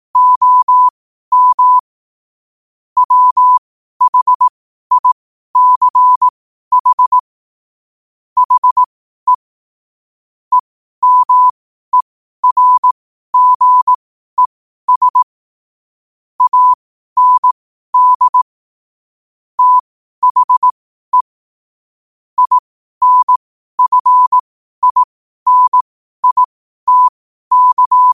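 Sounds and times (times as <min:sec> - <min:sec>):
morse code at 5 wpm: 0:00.2 - 0:01.8, 0:03.0 - 0:07.2, 0:08.4 - 0:09.5, 0:10.5 - 0:15.3, 0:16.4 - 0:18.4, 0:19.6 - 0:21.3, 0:22.4 - 0:28.1.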